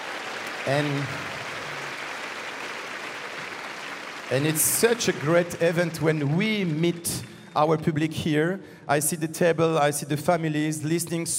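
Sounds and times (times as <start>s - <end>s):
audience applauding an orchestra: 0.0s - 7.7s
speech: 0.7s - 1.4s, 4.3s - 11.3s.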